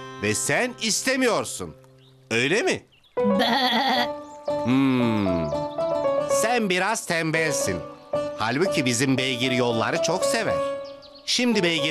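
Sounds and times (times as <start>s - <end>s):
speech: 0.2s - 5.6s, 6.4s - 10.7s, 11.3s - 11.9s
goat bleating: 3.3s - 4.1s.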